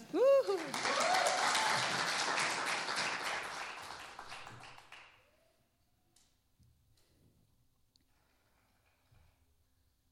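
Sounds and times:
crowd applause: 0.0s - 5.2s.

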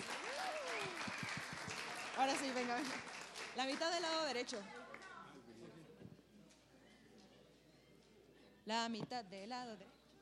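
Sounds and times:
audience applause for dancers: 0.0s - 4.0s
speech: 2.2s - 4.8s, 8.7s - 10.0s.

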